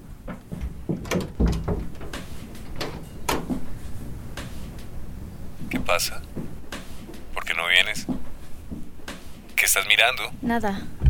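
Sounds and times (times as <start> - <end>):
door pushed shut: 0.6 - 2.1
door lock being turned: 0.6 - 3.6
speech: 6.0 - 6.2, 9.7 - 10.9.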